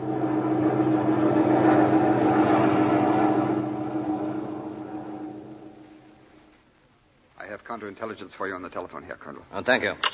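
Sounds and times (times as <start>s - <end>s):
aircraft engine drone in flight: 0.0s - 6.6s
speech: 7.7s - 10.1s.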